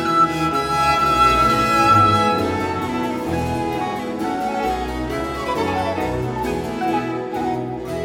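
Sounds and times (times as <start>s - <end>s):
recorder concerto: 0.0s - 8.0s.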